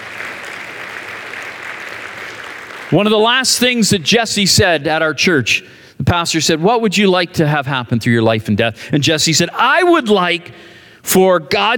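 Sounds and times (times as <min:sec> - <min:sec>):
audience clapping: 0:00.0 - 0:03.6
speech: 0:02.9 - 0:11.7.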